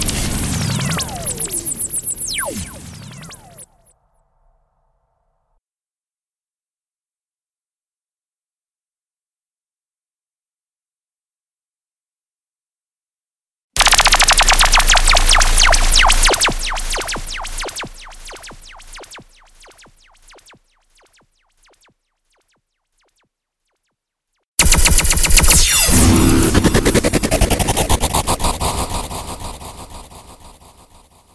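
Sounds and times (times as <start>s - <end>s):
sound effects: 0.0s - 3.9s, 13.8s - 23.2s, 24.6s - 31.2s.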